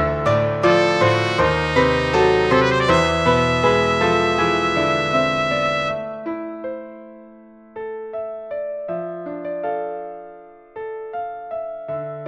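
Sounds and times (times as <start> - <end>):
piano in a trumpet and piano duet: 0.0 - 12.2
trumpet in a trumpet and piano duet: 0.6 - 6.2.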